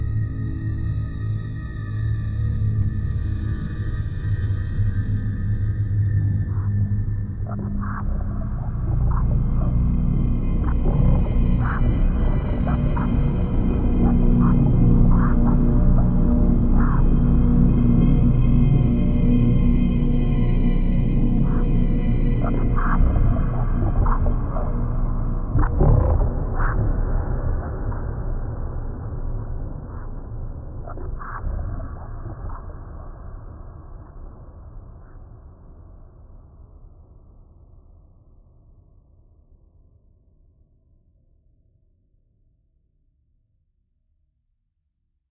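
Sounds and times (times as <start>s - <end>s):
horror music: 0.0s - 33.0s.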